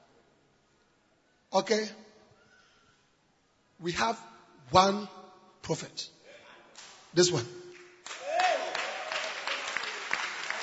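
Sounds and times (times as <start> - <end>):
speech: 1.5 - 2.0, 3.8 - 6.2, 7.1 - 7.6
audience clapping hands: 7.7 - 10.6
vocal whoop: 8.2 - 9.2.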